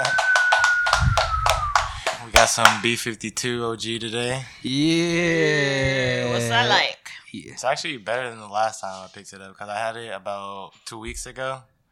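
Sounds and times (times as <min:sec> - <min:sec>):
people clapping: 0:00.0 - 0:03.0
speech: 0:02.5 - 0:11.7.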